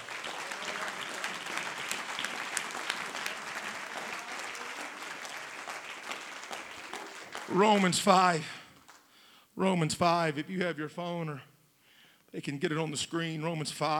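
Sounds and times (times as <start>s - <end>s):
audience applause: 0.0s - 8.2s
speech: 7.5s - 8.6s, 9.6s - 11.5s, 12.3s - 13.9s.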